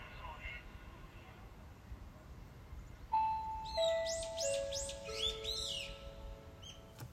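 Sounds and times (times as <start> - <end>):
alert sound: 3.1 - 6.6.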